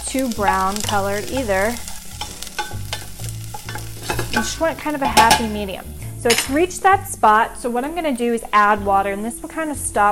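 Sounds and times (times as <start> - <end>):
corn sizzling in a hot pan: 0.0 - 10.1
speech: 0.1 - 1.9, 4.4 - 10.1
utensil scraping and stirring corn in pan: 0.8 - 6.7.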